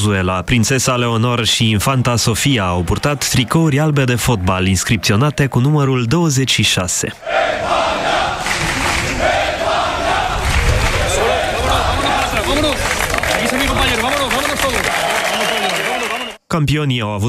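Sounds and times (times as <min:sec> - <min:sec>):
speech: 0:00.0 - 0:08.2, 0:16.5 - 0:17.2
individual voices calling out: 0:01.6 - 0:05.7, 0:07.2 - 0:16.4
large crowd of fans shouting and cheering: 0:01.8 - 0:05.5, 0:07.2 - 0:16.4
fans applauding: 0:08.4 - 0:09.2, 0:10.4 - 0:16.4.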